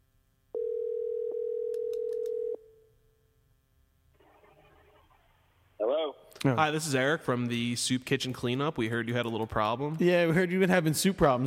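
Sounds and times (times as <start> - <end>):
telephone ringback tone on an outgoing call: 0.6 - 2.6
speech: 5.9 - 11.4.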